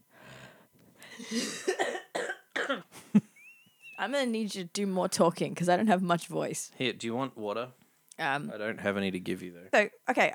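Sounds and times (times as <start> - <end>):
raspy coughing: 1.1 - 3.1
speech: 1.3 - 1.9, 4.1 - 10.3.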